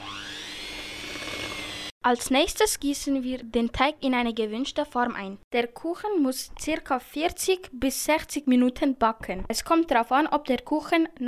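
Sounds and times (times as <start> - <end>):
electric mixer mixing cake batter: 0.0 - 1.9
speech: 2.0 - 11.2.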